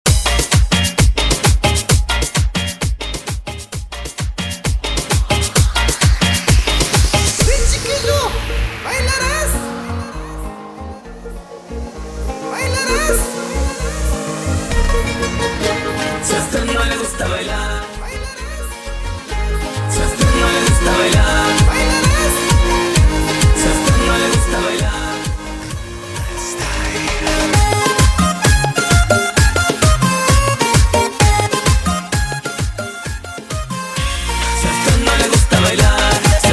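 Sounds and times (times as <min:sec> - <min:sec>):
extended music track at 131 BPM: 0:00.1 - 0:36.5.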